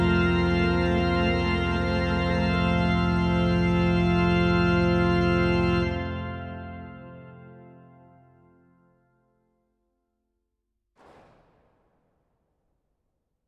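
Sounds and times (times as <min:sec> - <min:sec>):
organ improvisation on plenum: 0:00.0 - 0:08.8.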